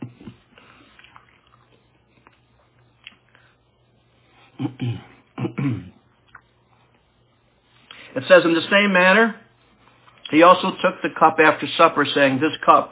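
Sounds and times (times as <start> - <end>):
chewing a communion wafer: 0.0 - 3.5, 6.2 - 6.6
speech: 4.8 - 5.9, 8.2 - 9.4, 10.3 - 12.9.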